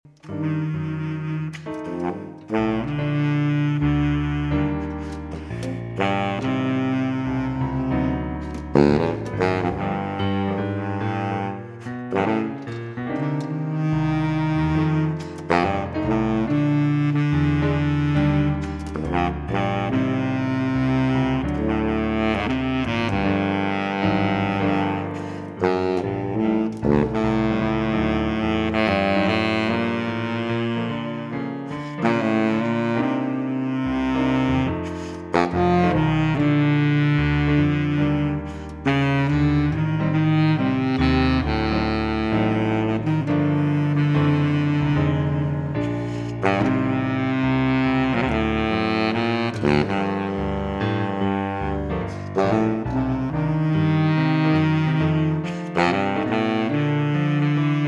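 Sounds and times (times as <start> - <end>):
piano: 0.0 - 57.8
saxophone: 0.0 - 57.8.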